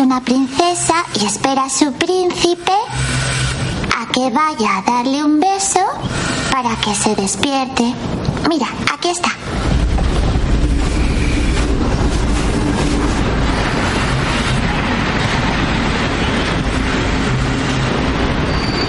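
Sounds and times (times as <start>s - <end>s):
military train coming to a stop beside another train: 0.0s - 8.4s, 9.4s - 18.8s
speech: 0.1s - 3.4s, 4.2s - 10.2s
thin metallic squeal of train: 10.7s - 12.2s, 18.4s - 18.8s.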